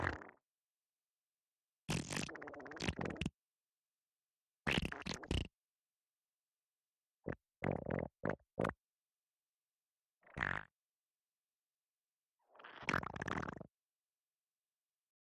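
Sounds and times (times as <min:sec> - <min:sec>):
wet fart from diarrhea: 0:01.9 - 0:03.3, 0:04.7 - 0:05.5, 0:07.3 - 0:08.8, 0:10.4 - 0:10.7, 0:12.6 - 0:13.7.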